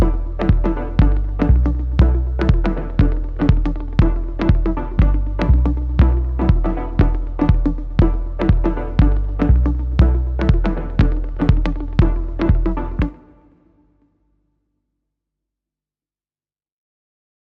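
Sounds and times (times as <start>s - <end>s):
music bed: 0.0s - 13.8s.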